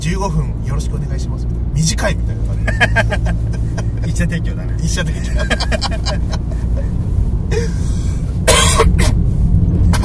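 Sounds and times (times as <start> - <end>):
speech: 0.1 - 7.0
low rumble: 0.5 - 10.0
laughter: 2.5 - 4.1, 5.1 - 6.9
coughing fit from choking on a dry throat: 8.5 - 9.2.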